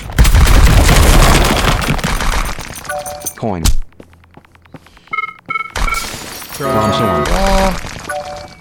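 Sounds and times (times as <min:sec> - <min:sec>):
video game boulders crashing down: 0:00.0 - 0:02.7
speech: 0:03.4 - 0:03.8, 0:06.6 - 0:07.8.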